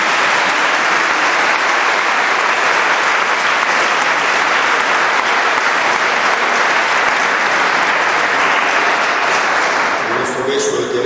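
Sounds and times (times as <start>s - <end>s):
audience applause: 0.0s - 10.9s.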